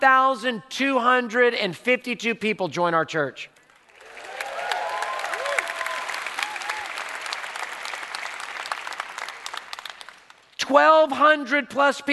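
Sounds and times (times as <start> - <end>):
speech: 0.0 - 3.5, 10.7 - 12.1
church congregation applauding at a membership announcement: 3.6 - 10.6
church congregation high whoops: 4.0 - 7.2.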